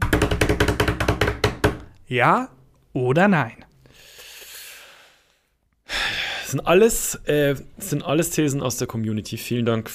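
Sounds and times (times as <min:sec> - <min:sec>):
rapid knocking: 0:00.0 - 0:01.9
speech: 0:02.1 - 0:04.1, 0:06.5 - 0:09.9.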